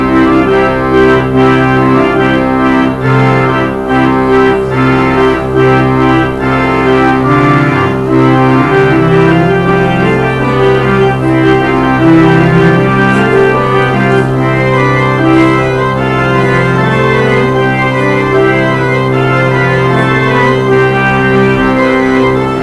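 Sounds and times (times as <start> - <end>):
organ outro: 0.0 - 22.6.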